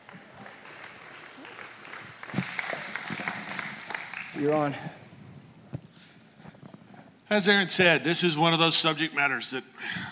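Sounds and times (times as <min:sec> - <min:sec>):
audience round of applause: 0:00.0 - 0:05.1
speech: 0:04.4 - 0:05.0, 0:07.3 - 0:10.1.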